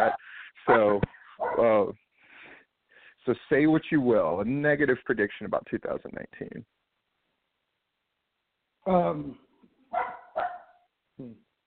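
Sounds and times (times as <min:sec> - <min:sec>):
dog barking: 0:00.0 - 0:01.7, 0:09.9 - 0:10.9
speech: 0:00.0 - 0:02.0, 0:03.2 - 0:06.8, 0:08.8 - 0:10.0, 0:11.2 - 0:11.4.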